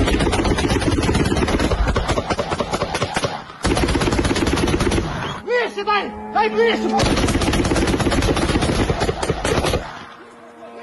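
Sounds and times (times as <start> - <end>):
automatic anti-aircraft gunfire at a Shahed drone: 0.0 - 5.4, 7.0 - 10.1
speech: 6.4 - 7.3.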